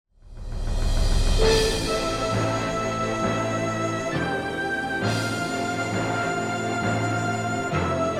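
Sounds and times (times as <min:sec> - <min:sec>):
lost round sound: 0:00.4 - 0:08.1.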